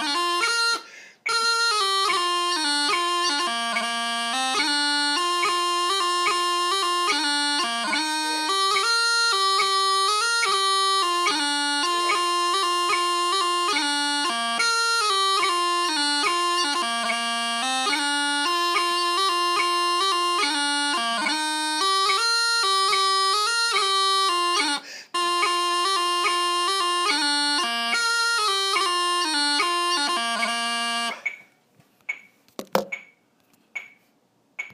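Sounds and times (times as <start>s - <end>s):
pipers music: 0.0s - 31.3s.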